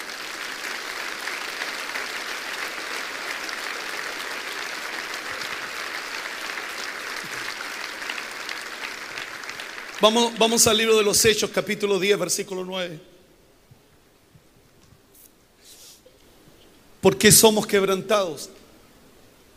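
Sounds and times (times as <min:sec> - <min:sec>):
audience applause: 0:00.0 - 0:11.2
speech: 0:10.0 - 0:13.1, 0:17.0 - 0:18.6.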